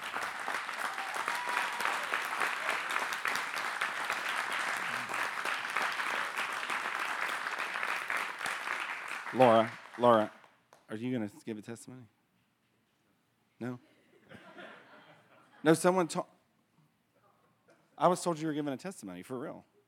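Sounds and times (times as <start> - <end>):
audience clapping: 0.0 - 10.9
speech: 9.3 - 12.2, 13.6 - 13.9, 15.6 - 16.3, 18.0 - 19.7.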